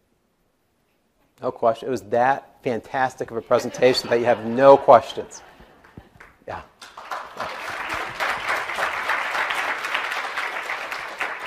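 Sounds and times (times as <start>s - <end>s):
speech: 1.4s - 5.5s, 6.5s - 6.7s
laughter: 3.3s - 6.2s
audience clapping: 4.8s - 11.4s.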